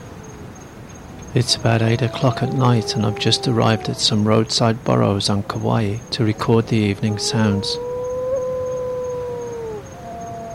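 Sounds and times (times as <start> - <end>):
speech: 1.3 - 7.9
wedge-tailed shearwater wailing call: 1.4 - 5.6, 6.5 - 10.5.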